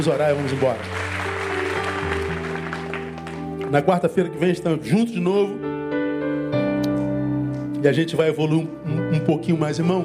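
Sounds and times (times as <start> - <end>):
speech: 0.0 - 1.0, 3.7 - 5.7, 7.8 - 10.0
audience applause: 0.0 - 3.9
loud sustained keyboard chords: 0.0 - 10.0.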